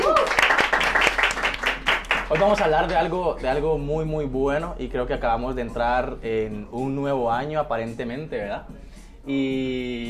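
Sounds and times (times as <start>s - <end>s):
audience applause: 0.0s - 2.8s
speech: 2.3s - 10.0s.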